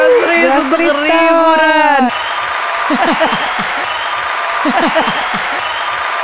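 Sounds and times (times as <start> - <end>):
people clapping: 0.4 - 6.2
speech: 0.5 - 2.3, 2.9 - 4.0, 4.6 - 5.2
person laughing: 2.9 - 3.9, 4.6 - 5.6.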